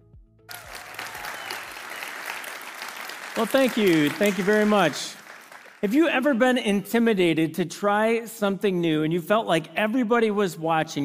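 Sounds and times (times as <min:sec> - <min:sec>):
Perrysburg campus church audience applause welcoming a speaker: 0:00.5 - 0:06.1
speech: 0:03.4 - 0:05.2, 0:05.8 - 0:11.0.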